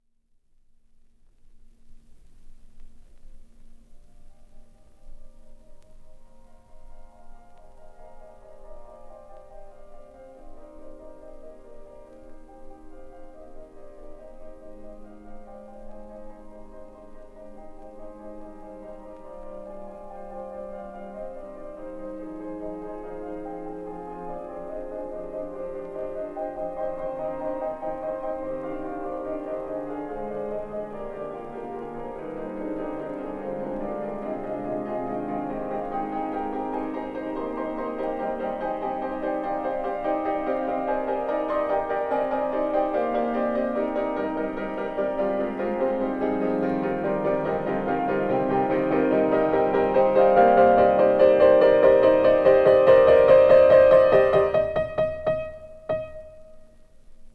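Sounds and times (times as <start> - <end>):
musical improvisations: 16.7 - 57.1.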